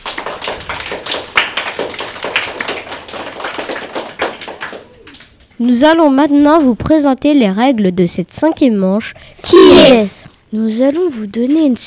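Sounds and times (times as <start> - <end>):
children applauding: 0.0 - 5.6
speech: 5.6 - 11.8.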